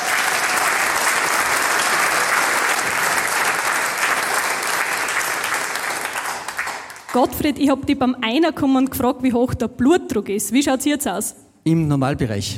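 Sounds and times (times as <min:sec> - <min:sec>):
huge round of applause: 0:00.0 - 0:07.6
speech: 0:07.1 - 0:12.5.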